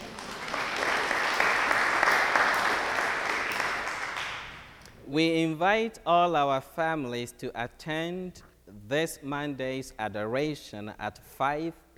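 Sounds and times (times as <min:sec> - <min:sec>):
audience clapping: 0:00.0 - 0:04.8
speech: 0:05.1 - 0:11.9.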